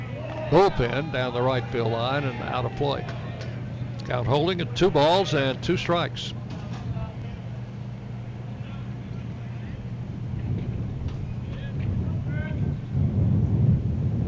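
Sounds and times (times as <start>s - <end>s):
scattered voices: 0.0s - 12.8s
faint crowd murmur: 0.0s - 12.9s
speech: 0.5s - 3.2s, 4.1s - 6.4s
wind gusting across a ballpark microphone: 9.7s - 14.2s.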